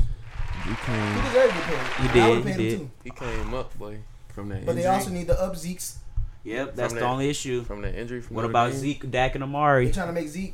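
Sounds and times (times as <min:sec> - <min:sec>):
applause: 0:00.2 - 0:02.6
speech: 0:00.7 - 0:10.5.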